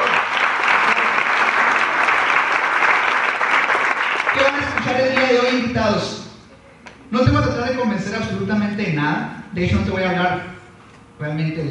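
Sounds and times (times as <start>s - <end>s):
audience applause: 0.0s - 5.4s
speech: 7.1s - 10.5s, 11.2s - 11.6s.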